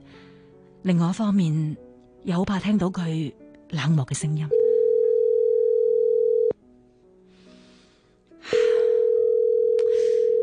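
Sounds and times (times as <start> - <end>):
speech: 0.8 - 4.6
loud steady electronic telephone ringback tone, unanswered: 4.5 - 6.6, 9.0 - 10.4.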